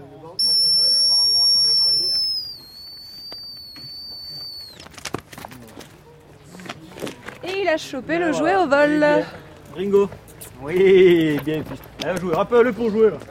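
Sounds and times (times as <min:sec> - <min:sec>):
dog handler blowing a recall whistle: 0:00.4 - 0:04.8
speech: 0:07.7 - 0:13.2.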